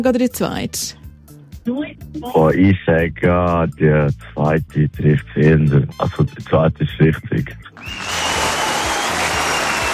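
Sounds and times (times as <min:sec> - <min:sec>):
speech: 0:00.0 - 0:01.0, 0:01.6 - 0:08.2
applause sound effect: 0:07.8 - 0:09.9.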